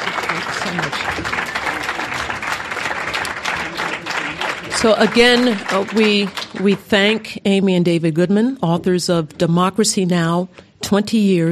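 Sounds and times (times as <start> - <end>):
audience applause: 0.0 - 7.2
speech: 4.8 - 11.5.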